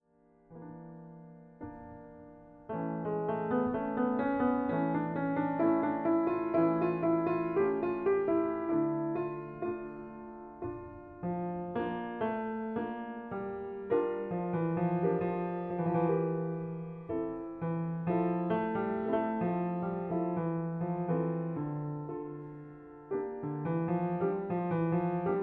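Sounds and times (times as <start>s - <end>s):
keyboard concerto adagio: 0.5s - 25.4s.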